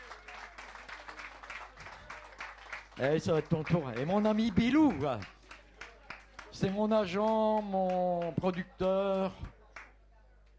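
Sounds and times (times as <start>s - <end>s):
audience applause: 0.0s - 9.3s
speech: 3.0s - 5.4s, 6.6s - 9.5s.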